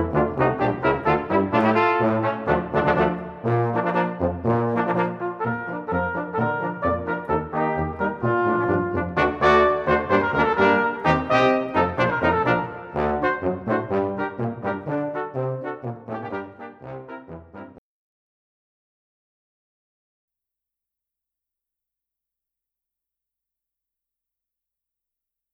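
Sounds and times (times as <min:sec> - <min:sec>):
Hungarian march music: 0:00.0 - 0:17.8.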